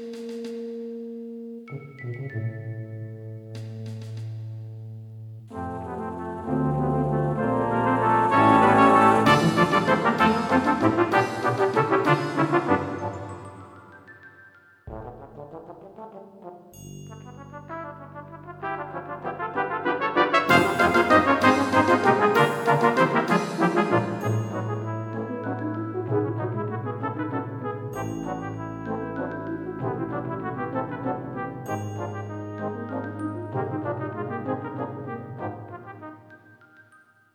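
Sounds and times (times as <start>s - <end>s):
brass choir playing carols: 5.5s - 14.0s, 17.2s - 36.5s.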